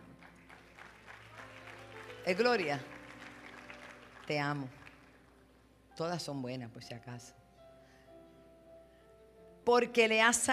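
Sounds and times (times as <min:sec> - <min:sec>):
applause: 0:00.0 - 0:05.4
speech: 0:02.3 - 0:02.9, 0:04.3 - 0:04.8, 0:06.0 - 0:07.4, 0:09.6 - 0:10.5.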